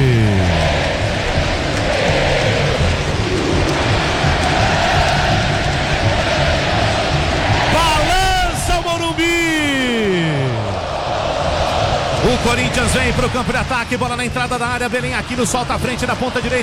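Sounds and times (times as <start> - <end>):
stadium crowd singing club anthem: 0.0 - 16.6
speech: 12.9 - 16.6.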